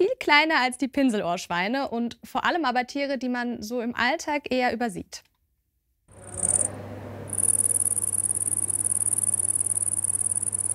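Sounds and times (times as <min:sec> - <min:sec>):
speech: 0:00.1 - 0:05.3
cricket chirping: 0:06.2 - 0:10.7.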